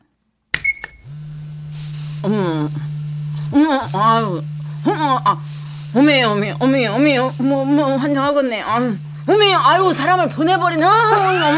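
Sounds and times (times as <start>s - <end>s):
electric vibration massage machine: 1.0s - 11.5s
speech: 2.2s - 3.0s, 3.6s - 11.5s.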